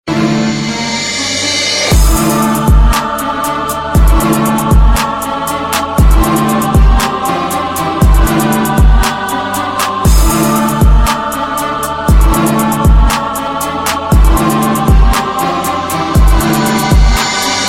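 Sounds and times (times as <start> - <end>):
hip hop beat: 0.1 - 17.6.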